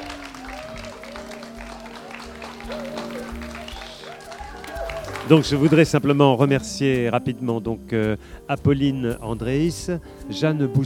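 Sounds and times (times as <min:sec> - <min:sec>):
audience applause: 0:00.0 - 0:06.3
speech: 0:02.7 - 0:03.6, 0:05.2 - 0:10.8.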